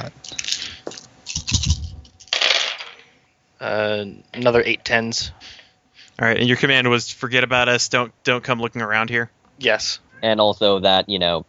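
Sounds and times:
dice rolling across a hard surface: 0:00.3 - 0:03.1
speech: 0:03.6 - 0:05.6, 0:06.2 - 0:11.4.

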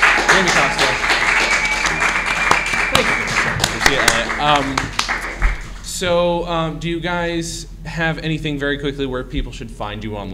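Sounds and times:
audience round of applause: 0:00.0 - 0:05.9
speech: 0:00.4 - 0:00.8, 0:04.4 - 0:04.9, 0:06.0 - 0:10.3.

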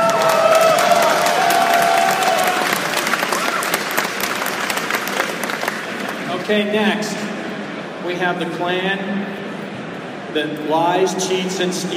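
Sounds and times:
audience applause and cheering for performers at a live event: 0:00.0 - 0:06.3
speech: 0:06.5 - 0:07.2, 0:08.1 - 0:09.4, 0:10.3 - 0:11.9.

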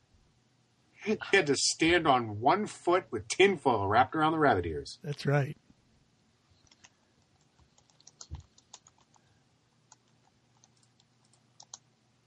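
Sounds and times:
speech: 0:01.0 - 0:05.6
typing on a computer keyboard: 0:06.6 - 0:09.2, 0:09.9 - 0:11.9.

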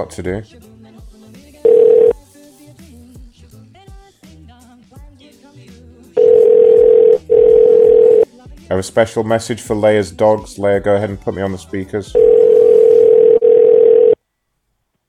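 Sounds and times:
speech: 0:00.0 - 0:00.7, 0:08.7 - 0:12.3
voicemail tone: 0:01.6 - 0:02.2, 0:06.2 - 0:08.2, 0:12.2 - 0:14.2
long loud tone: 0:06.2 - 0:08.2, 0:12.2 - 0:14.2.

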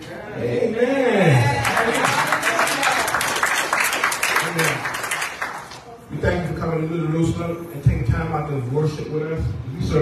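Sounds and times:
speech: 0:00.4 - 0:01.0, 0:06.8 - 0:10.0
congregation applauding in church: 0:01.4 - 0:05.9.

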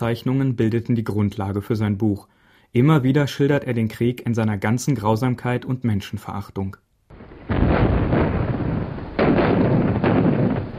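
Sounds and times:
speech: 0:00.0 - 0:06.9
heavy artillery shell explosions: 0:07.1 - 0:10.7.

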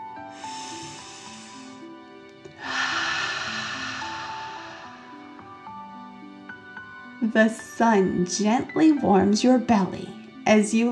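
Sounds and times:
soft sustained musical tones: 0:00.0 - 0:07.6
deep dragon-like breathing during a relaxation exercise: 0:00.2 - 0:06.2
speech: 0:07.2 - 0:10.9.

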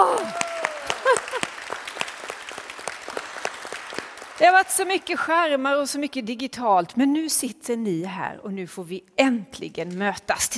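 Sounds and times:
brief whoops: 0:00.0 - 0:01.5
audience applause: 0:00.0 - 0:04.5
speech: 0:04.4 - 0:10.5.

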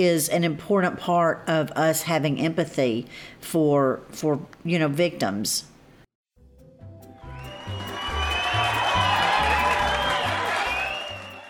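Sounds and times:
speech: 0:00.0 - 0:05.7
cheering fans sound effect: 0:07.2 - 0:11.4.

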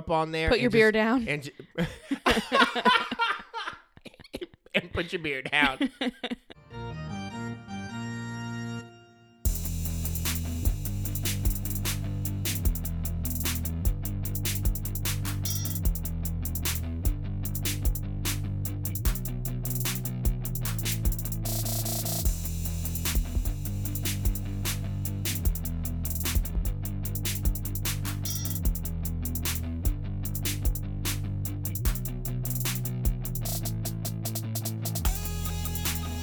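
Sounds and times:
speech: 0:00.0 - 0:03.2, 0:05.0 - 0:07.6
instrumental podcast intro music: 0:06.6 - 0:36.2
prominent bass line: 0:06.7 - 0:36.2
steady driving beat: 0:09.5 - 0:36.2.

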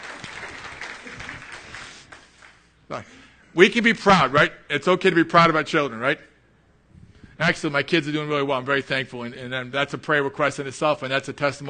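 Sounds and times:
audience applause: 0:00.0 - 0:02.7
speech: 0:02.9 - 0:06.3, 0:07.4 - 0:11.6.

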